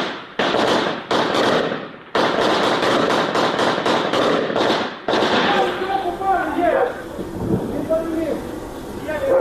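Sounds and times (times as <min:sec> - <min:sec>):
rapid bursts of gunfire at a drone: 0:00.0 - 0:05.8
voices shouting: 0:05.3 - 0:09.3.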